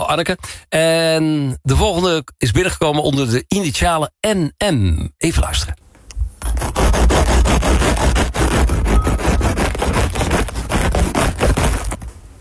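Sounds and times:
speech: 0.1 - 5.8
knife cutting freshly baked bread: 6.4 - 12.1.

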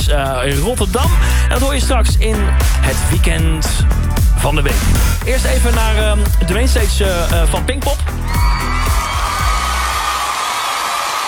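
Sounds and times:
speech: 0.1 - 8.6
festival crowd clapping and cheering at Pinkpop: 2.2 - 3.3, 8.0 - 11.2.

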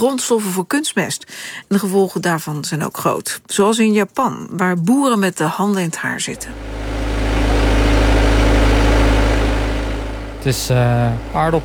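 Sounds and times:
speech: 0.0 - 7.0, 10.4 - 11.6
potato harvesting machine engine running at idle: 6.3 - 11.6.

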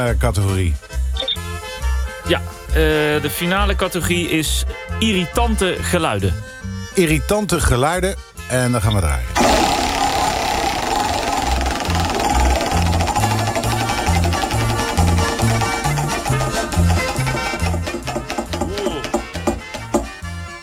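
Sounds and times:
speech: 0.0 - 1.0, 2.3 - 9.6
moped engine running: 9.4 - 20.3.

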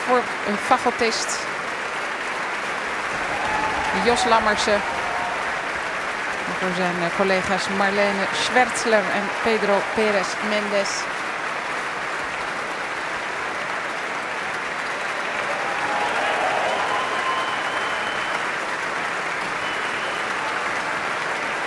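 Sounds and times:
audience applause for orchestra musicians: 0.0 - 21.6
speech: 0.1 - 1.5, 4.0 - 5.0, 6.5 - 11.2.

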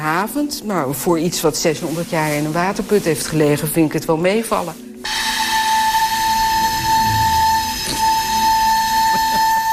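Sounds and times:
speech: 0.0 - 5.2
600-year-old recorder holding a high note: 5.1 - 9.7.

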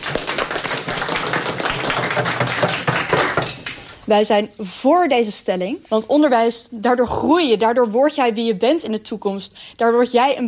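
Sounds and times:
audience applause: 0.0 - 3.6
speech: 4.1 - 10.4.

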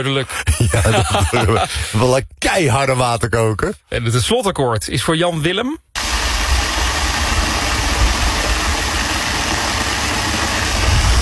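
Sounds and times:
speech: 0.0 - 5.9
laughter: 0.1 - 2.0
waterfall in Park Berg en Bos: 6.0 - 11.2.

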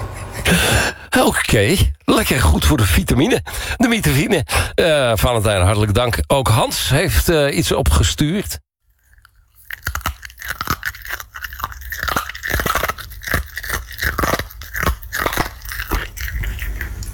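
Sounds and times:
speech: 0.5 - 8.6
dog crunching and chewing a treat: 8.9 - 17.1.

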